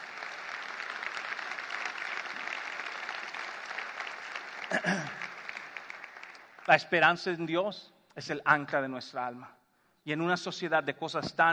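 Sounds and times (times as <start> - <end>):
audience applause: 0.0 - 6.8
speech: 4.7 - 5.2, 6.7 - 11.5.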